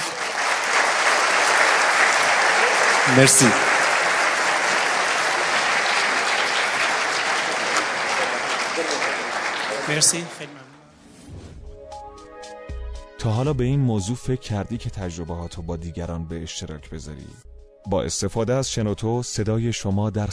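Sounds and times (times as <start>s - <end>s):
crowd applauding: 0.0s - 10.6s
speech: 3.1s - 3.7s, 9.9s - 10.8s, 13.2s - 20.3s.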